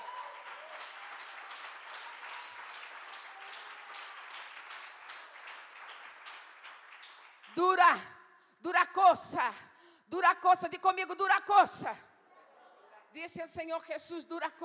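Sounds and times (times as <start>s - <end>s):
audience clapping: 0.0s - 8.0s
speech: 7.6s - 12.1s, 13.1s - 14.6s.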